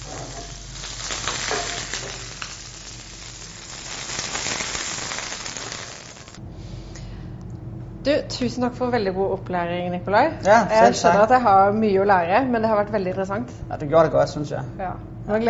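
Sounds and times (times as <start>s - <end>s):
mushrooms frying in a pan: 0.0s - 6.4s
speech: 8.1s - 15.4s.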